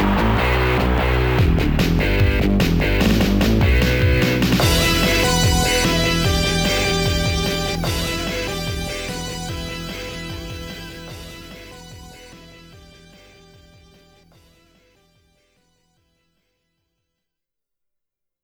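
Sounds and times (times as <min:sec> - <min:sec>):
guitar rumba music: 0:00.0 - 0:12.4.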